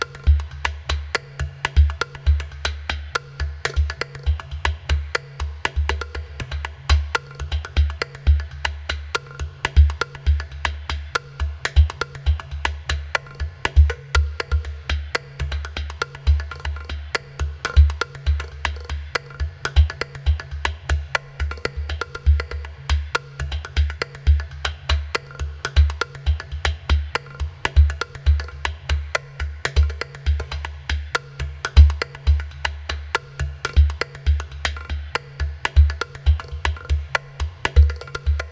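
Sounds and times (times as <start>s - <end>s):
percussion rhythm: 0.0s - 38.5s.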